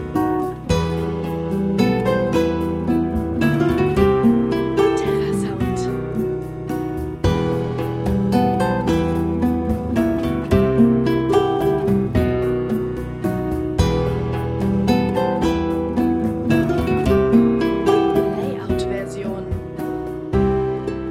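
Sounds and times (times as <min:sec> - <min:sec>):
Spanish melancholy music: 0:00.0 - 0:21.1.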